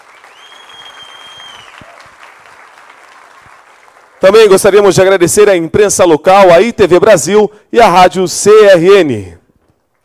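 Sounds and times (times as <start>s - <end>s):
audience applause: 0.0s - 4.4s
thin high whistle-like tone: 0.3s - 1.8s
speech: 4.2s - 9.4s.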